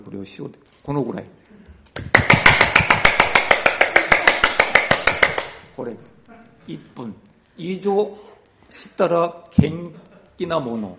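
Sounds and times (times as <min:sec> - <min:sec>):
speech: 0:00.0 - 0:01.5, 0:05.8 - 0:10.9
hands clapping: 0:01.9 - 0:05.7.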